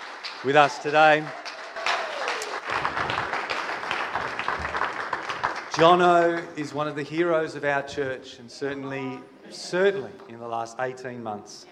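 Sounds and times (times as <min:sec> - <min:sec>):
church congregation applause welcoming a speaker: 0:00.0 - 0:07.0
speech: 0:00.4 - 0:01.4, 0:05.8 - 0:11.7.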